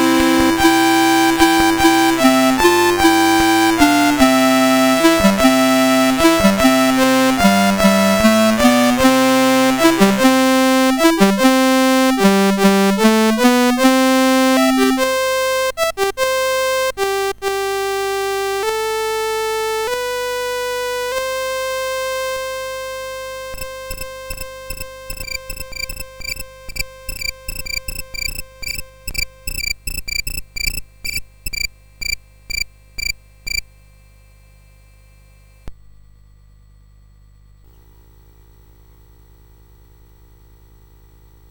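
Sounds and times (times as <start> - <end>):
chiptune music on CSG8580R5 sound chip: 0.0 - 29.8.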